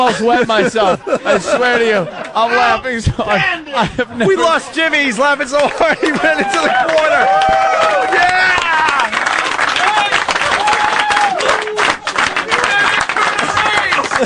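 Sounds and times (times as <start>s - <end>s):
speech: 0.0s - 7.9s
laughter: 0.0s - 9.2s, 11.6s - 14.2s
thunderous applause: 5.6s - 14.2s.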